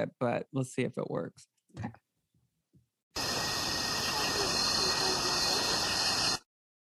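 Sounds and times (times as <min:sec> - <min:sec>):
speech: 0:00.0 - 0:02.0
crickets chirping at night: 0:03.2 - 0:06.4.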